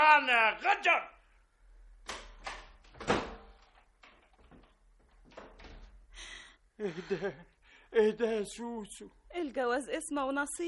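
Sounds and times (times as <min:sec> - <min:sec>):
speech: 0:00.3 - 0:01.2, 0:06.8 - 0:10.6
door thudding shut: 0:02.1 - 0:03.8.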